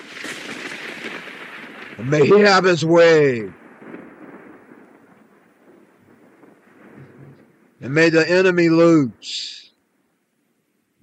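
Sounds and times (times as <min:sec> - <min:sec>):
thunder from a lightning bolt: 0:00.0 - 0:07.8
speech: 0:02.0 - 0:03.6, 0:07.8 - 0:09.6.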